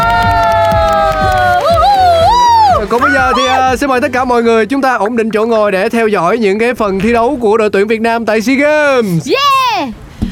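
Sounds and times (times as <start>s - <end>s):
clapping: 0.0s - 3.4s
crowd cheering and whooping: 0.0s - 3.8s
speech: 2.9s - 10.0s.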